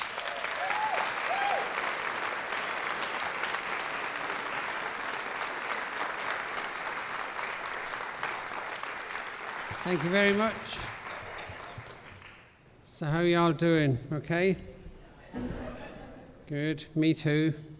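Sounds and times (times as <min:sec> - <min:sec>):
audience applause greeting an Irish fiddler onstage: 0:00.0 - 0:12.7
speech: 0:09.8 - 0:11.0, 0:13.0 - 0:14.7, 0:16.5 - 0:17.7
laughter: 0:15.0 - 0:16.5.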